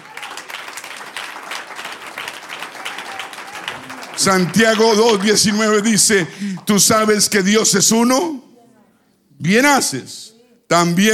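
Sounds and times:
audience applause: 0.0 - 6.7
speech: 4.2 - 8.4, 9.4 - 11.1.

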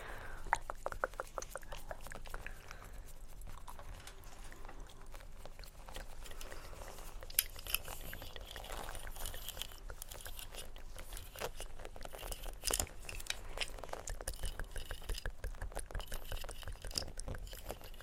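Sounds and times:
mouth sounds: 0.0 - 2.8
tapping and scratching: 0.5 - 18.0.

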